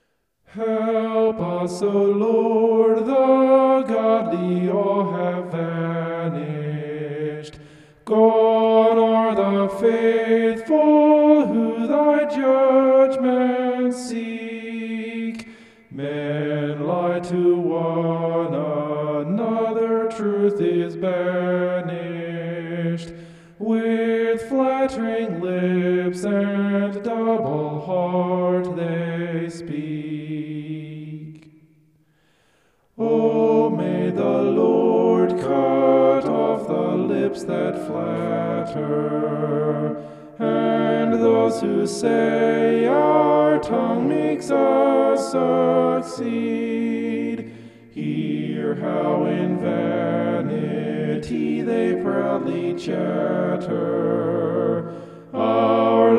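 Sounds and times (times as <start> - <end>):
homophonic vocals: 0.0 - 31.7, 32.9 - 56.1.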